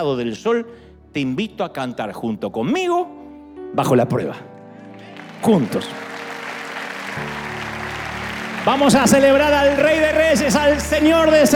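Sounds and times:
speech: 0.0 - 4.5, 5.4 - 6.1, 7.2 - 7.4, 8.6 - 11.5
audience applause: 4.9 - 11.5.

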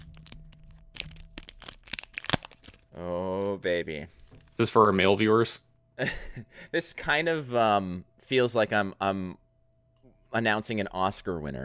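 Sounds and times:
Everfest pack seal tearing open at a microphone: 0.0 - 3.7
speech: 3.0 - 9.4, 10.3 - 11.6.

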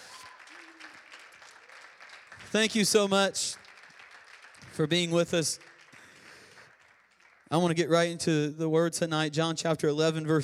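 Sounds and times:
audience hand clapping: 0.0 - 8.2
speech: 2.5 - 3.6, 4.8 - 5.7, 7.5 - 10.4.

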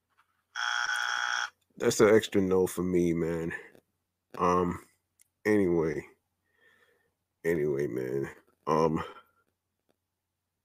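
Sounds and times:
loud harsh buzzer: 0.6 - 1.5
speech: 1.8 - 3.7, 4.4 - 6.1, 7.4 - 9.2.

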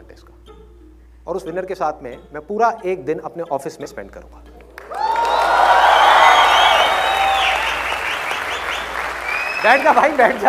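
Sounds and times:
speech: 1.3 - 4.5, 9.6 - 10.4
audience hooting: 4.9 - 10.4.

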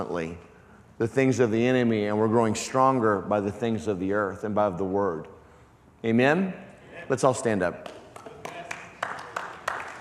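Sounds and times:
speech: 0.0 - 5.4, 6.0 - 8.0
hand claps from the audience: 7.8 - 9.9.

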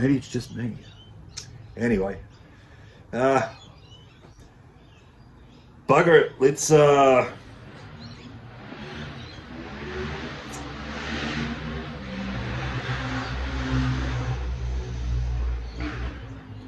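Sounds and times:
speech: 0.0 - 1.0, 1.8 - 2.3, 3.1 - 3.6, 5.9 - 7.4
dirt bikes driving past: 7.1 - 16.6.

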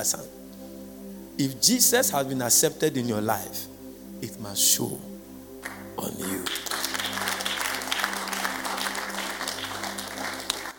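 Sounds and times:
speech: 0.0 - 0.4, 1.4 - 5.1, 6.0 - 6.8
audience clapping: 5.6 - 10.7.

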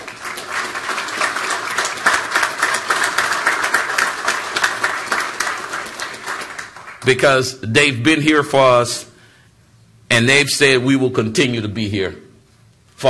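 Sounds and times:
audience applause: 0.0 - 7.2
speech: 7.1 - 9.1, 10.2 - 12.2.

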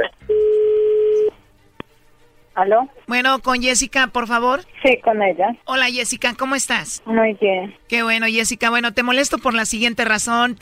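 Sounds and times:
telephone dialing tone: 0.0 - 1.4
speech: 2.6 - 10.6.

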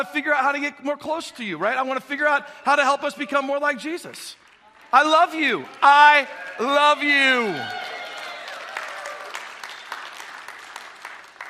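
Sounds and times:
speech: 0.0 - 7.9
audience clapping: 4.3 - 11.4.

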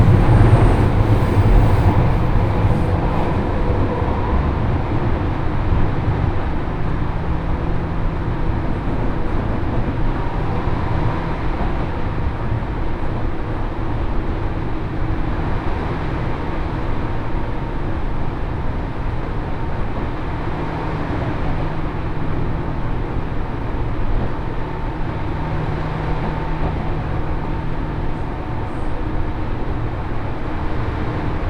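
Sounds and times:
thin whine: 0.0 - 5.3
Senseki Line local train running from Matsushima-Kaigan toward Ishinomaki: 0.0 - 31.4.

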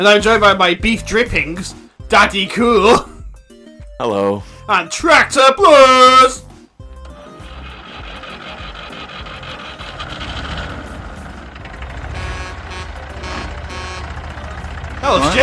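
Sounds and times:
speech: 0.0 - 3.1, 4.0 - 6.4, 15.1 - 15.4
horn honking: 7.2 - 15.4.

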